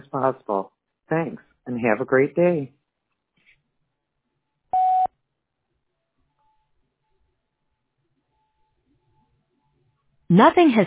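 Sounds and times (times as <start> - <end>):
speech: 0.1 - 2.8, 10.3 - 10.8
answering machine beep: 4.8 - 5.1.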